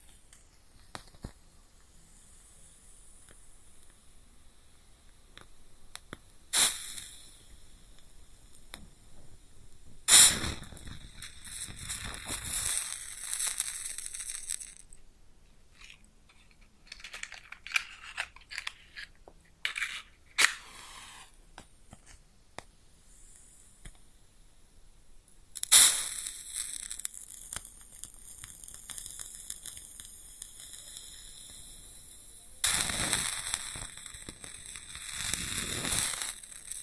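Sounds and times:
match being struck and flaring with a hissing crackle: 0.0 - 1.4, 5.3 - 9.0, 9.7 - 15.0, 15.7 - 22.7, 25.5 - 32.0, 32.6 - 36.8.

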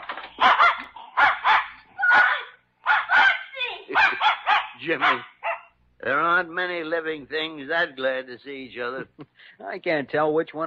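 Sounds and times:
dog barking: 0.4 - 5.8
speech: 4.9 - 5.3, 6.0 - 10.6.

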